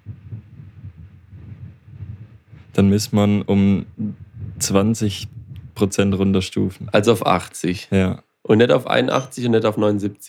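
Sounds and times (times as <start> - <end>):
fan running close to the microphone: 0.0 - 7.5
speech: 2.8 - 10.2.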